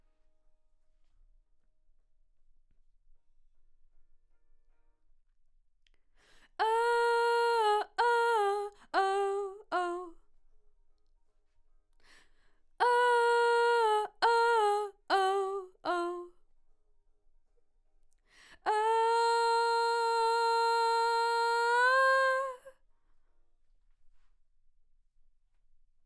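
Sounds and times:
vocal: 6.6 - 10.2, 12.8 - 16.3, 18.6 - 22.7.

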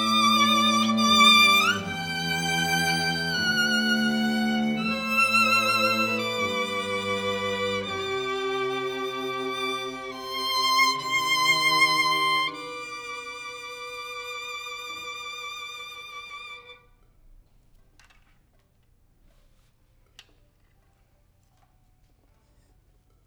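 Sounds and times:
violin: 0.0 - 17.0.

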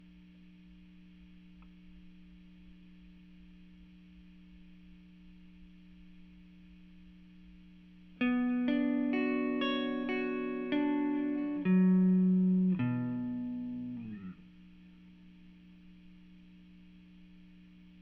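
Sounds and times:
guitar: 7.7 - 16.4.

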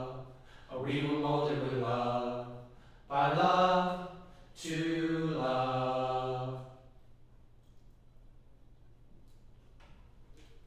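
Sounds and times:
choir singing low harmony: 0.0 - 7.0.

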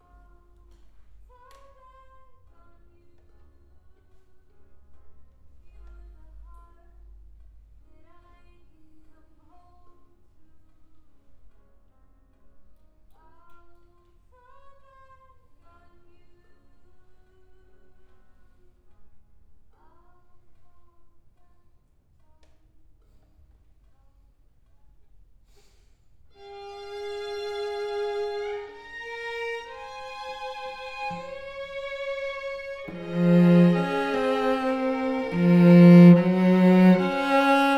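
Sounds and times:
cello: 26.4 - 37.7.

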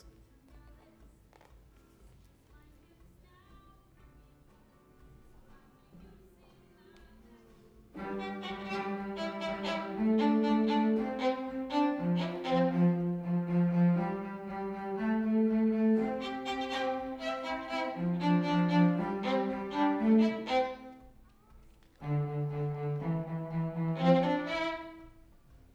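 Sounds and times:
violin: 7.1 - 25.7.

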